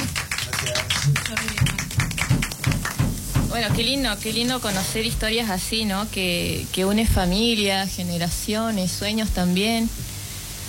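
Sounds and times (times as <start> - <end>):
applause: 0.0 - 3.4
speech: 1.0 - 1.8, 3.6 - 10.0.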